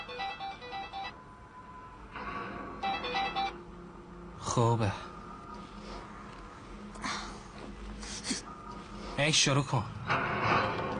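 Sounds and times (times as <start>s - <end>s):
phone electronic ringtone: 0.0s - 1.4s, 2.8s - 3.6s
steady noise: 0.0s - 10.9s
speech: 4.6s - 5.1s, 9.2s - 10.2s.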